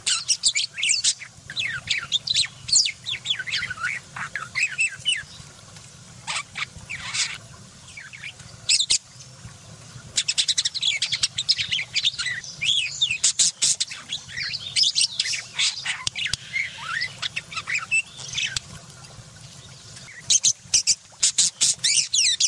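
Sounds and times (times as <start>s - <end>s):
budgerigar song: 0.0s - 5.4s, 6.3s - 9.0s, 10.2s - 18.7s, 20.1s - 22.4s.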